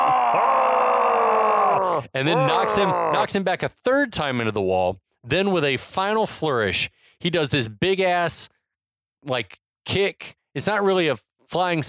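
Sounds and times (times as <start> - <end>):
sustained scream from film fight scene: 0.0 - 3.3
speech: 2.1 - 8.6, 9.2 - 11.8.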